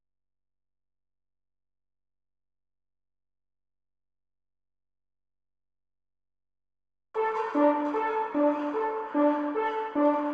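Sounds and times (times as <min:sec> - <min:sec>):
brass intro: 0:07.2 - 0:10.3.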